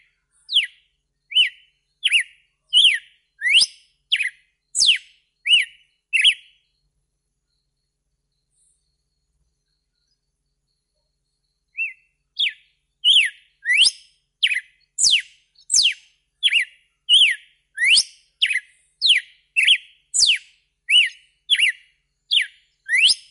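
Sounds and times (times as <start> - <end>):
red-cowled cardinal whistled song: 0.0 - 6.9, 7.5 - 23.3.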